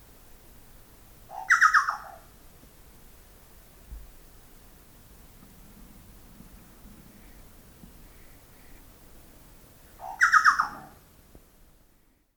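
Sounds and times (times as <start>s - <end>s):
chucao Scelorchilus rubecula calling: 1.3s - 2.3s, 10.0s - 11.0s.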